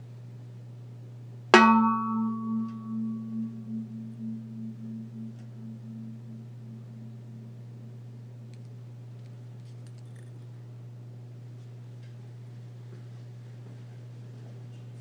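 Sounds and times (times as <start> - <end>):
dust pan struck as a gong: 1.6 - 8.5.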